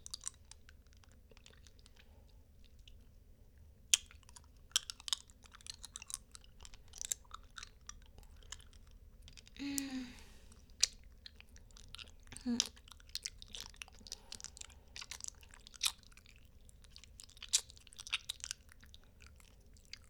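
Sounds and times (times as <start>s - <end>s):
candy licking in binaural stereo: 4.4s - 20.0s.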